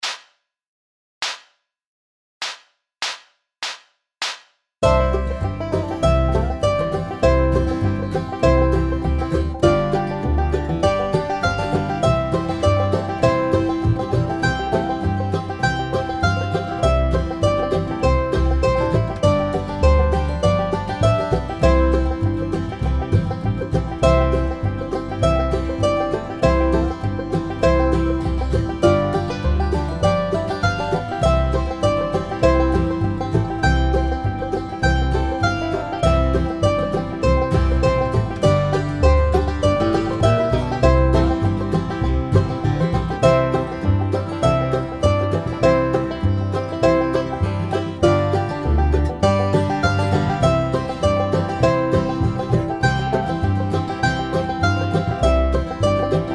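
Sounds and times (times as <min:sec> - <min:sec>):
mandolin: 0:04.8 - 0:56.3.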